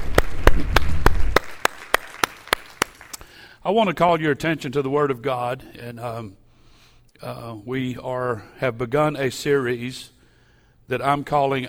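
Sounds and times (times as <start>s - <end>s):
low rumble: 0.0s - 1.4s
hand claps greeting guests at a church service: 0.0s - 3.4s
speech: 3.6s - 6.4s, 7.2s - 10.2s, 10.9s - 11.6s.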